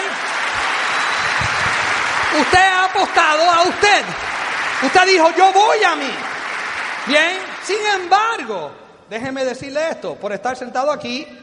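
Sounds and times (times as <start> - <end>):
audience applause: 0.0 - 8.5
speech: 2.3 - 6.3, 7.1 - 11.4.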